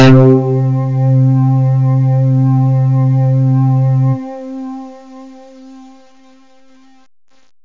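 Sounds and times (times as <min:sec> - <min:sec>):
synth: 0:00.0 - 0:06.0.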